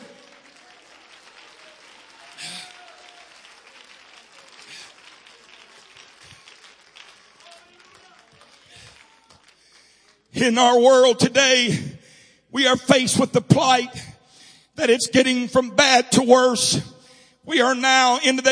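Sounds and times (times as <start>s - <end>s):
congregation clapping hands: 0.0s - 11.6s
speech: 10.4s - 11.9s, 12.6s - 14.0s, 14.8s - 16.9s, 17.5s - 18.5s.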